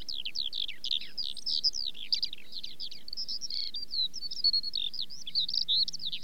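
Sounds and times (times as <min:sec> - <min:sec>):
Eurasian skylark singing: 0:00.0 - 0:06.2.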